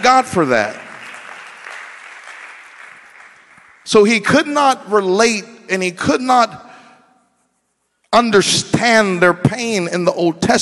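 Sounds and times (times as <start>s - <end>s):
speech: 0.0s - 0.8s, 3.9s - 6.6s, 8.1s - 10.6s
audience clapping hands: 0.0s - 4.3s.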